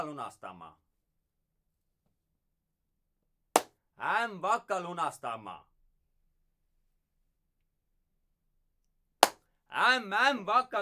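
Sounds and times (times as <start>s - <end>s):
speech: 0.0s - 0.9s, 4.0s - 5.7s, 9.7s - 10.8s
hand clap: 3.6s - 3.8s, 9.2s - 9.5s.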